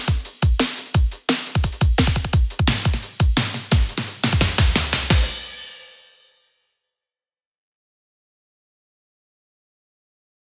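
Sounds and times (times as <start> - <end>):
drum: 0.0 - 6.0.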